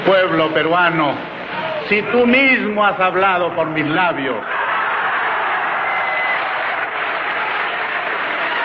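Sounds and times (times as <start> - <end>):
speech: 0.1 - 1.3, 1.9 - 4.6
crowd applause: 4.5 - 8.6.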